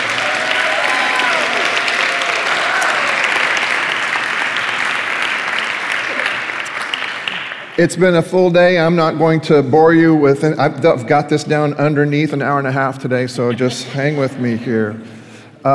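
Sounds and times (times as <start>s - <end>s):
crowd applause: 0.0s - 7.8s
speech: 7.8s - 15.7s.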